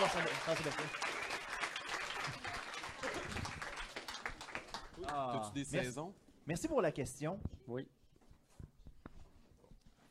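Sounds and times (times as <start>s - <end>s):
speech: 0.0s - 1.2s, 5.0s - 8.0s
audience applause: 0.0s - 5.5s.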